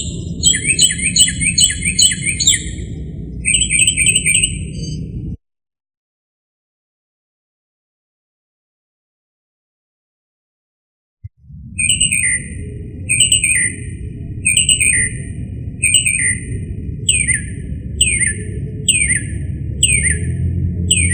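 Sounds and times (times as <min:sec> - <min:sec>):
northern mockingbird singing: 0:00.0 - 0:05.0, 0:11.8 - 0:21.1.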